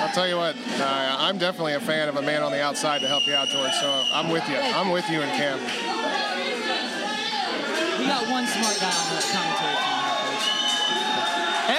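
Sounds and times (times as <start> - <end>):
Grindhouse crowd cheering: 0.0 - 1.4, 2.9 - 11.7
speech: 0.2 - 6.6, 8.0 - 10.1.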